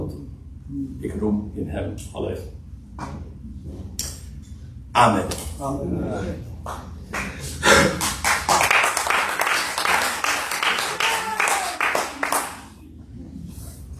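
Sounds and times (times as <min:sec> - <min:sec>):
speech: 0:01.0 - 0:03.9, 0:05.0 - 0:07.7
crowd audience applause: 0:07.1 - 0:12.8.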